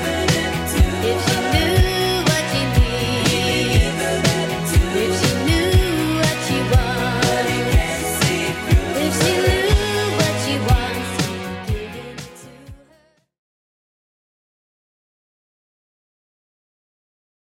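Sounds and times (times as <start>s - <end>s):
80s Redrum drum machine beat: 0.0s - 12.8s.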